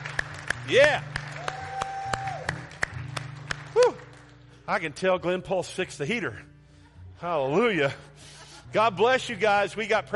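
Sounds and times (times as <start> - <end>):
audience clapping: 0.0 - 4.6
speech: 0.7 - 1.1, 4.7 - 6.5, 7.2 - 10.1
cheering shout: 1.4 - 2.6.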